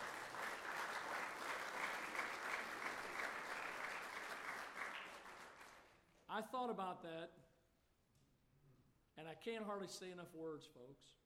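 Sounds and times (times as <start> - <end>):
audience applause: 0.0 - 5.9
speech: 6.3 - 7.5, 9.2 - 11.2.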